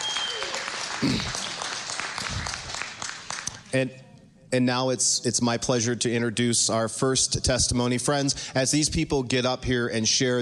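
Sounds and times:
audience applause: 0.0s - 3.7s
speech: 1.0s - 1.4s, 3.7s - 10.4s.

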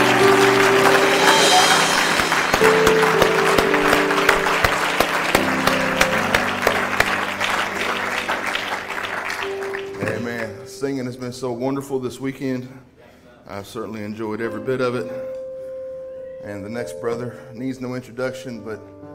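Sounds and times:
audience clapping: 0.0s - 10.6s
speech: 11.3s - 15.4s, 16.4s - 19.0s.

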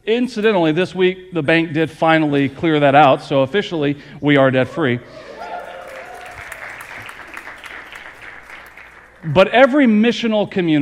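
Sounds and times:
speech: 0.0s - 5.3s, 9.2s - 10.8s
audience applause: 5.2s - 9.4s.

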